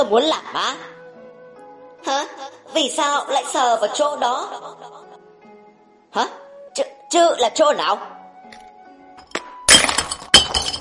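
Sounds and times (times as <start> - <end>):
speech: 0.0 - 0.9, 2.0 - 5.0, 6.1 - 8.2
shattering crashes in an audio drama: 9.7 - 10.7.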